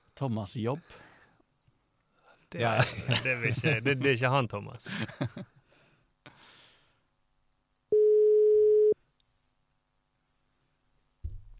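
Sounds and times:
speech: 0.2 - 1.1, 2.5 - 5.6
laughter: 2.6 - 4.1, 4.8 - 5.5
telephone tone while placing a call: 7.9 - 9.0
soft low thump: 11.2 - 11.5.

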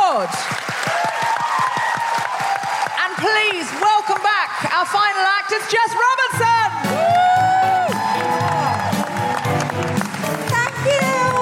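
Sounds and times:
audience applause: 0.0 - 5.2, 6.7 - 11.4
speech: 0.2 - 0.7, 4.5 - 6.6.

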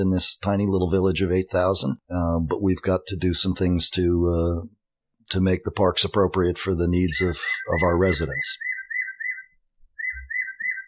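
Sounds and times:
speech: 0.0 - 8.7
Audubon clock chirping a bird call: 7.1 - 10.8.

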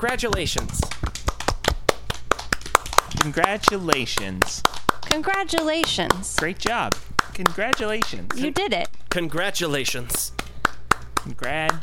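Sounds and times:
speech: 0.0 - 1.0, 3.2 - 10.4, 11.2 - 11.8
sharp separate claps: 0.0 - 11.8.

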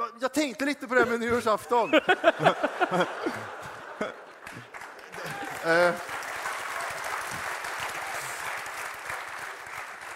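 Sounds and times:
speech: 0.2 - 4.2, 5.6 - 6.1
laughter: 1.0 - 6.0
audience applauding: 2.4 - 10.1.

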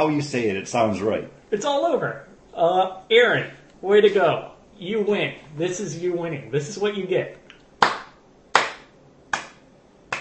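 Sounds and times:
speech: 0.0 - 7.4
single person clapping slowly: 7.8 - 10.1.

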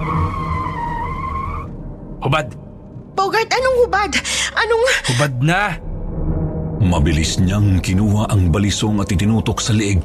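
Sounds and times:
taxi tires skidding while braking suddenly: 0.0 - 1.8
speech: 2.2 - 2.6, 3.2 - 5.9, 6.8 - 10.0.

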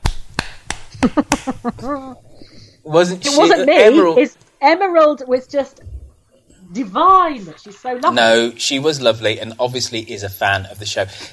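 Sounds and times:
sharp dry hand claps: 0.0 - 1.7
speech: 1.0 - 5.9, 6.7 - 11.3.

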